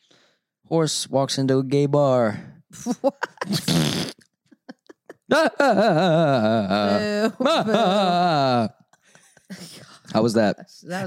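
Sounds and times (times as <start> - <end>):
speech: 0.7 - 4.1, 5.3 - 8.8, 9.5 - 11.0
laughter: 2.8 - 3.8, 4.5 - 10.1
fart noise: 3.5 - 4.3.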